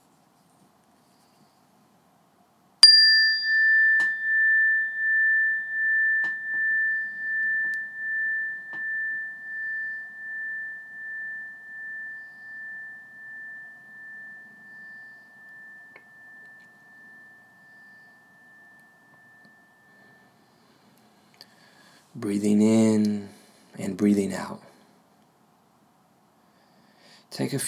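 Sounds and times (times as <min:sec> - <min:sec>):
meditation bell ringing: 0:02.8 - 0:21.9
speech: 0:22.2 - 0:24.6, 0:27.4 - 0:27.6.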